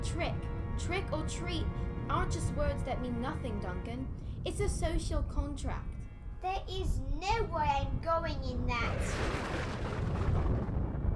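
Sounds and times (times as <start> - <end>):
speech: 0.0 - 10.3
lightning striking a tree: 8.8 - 11.1.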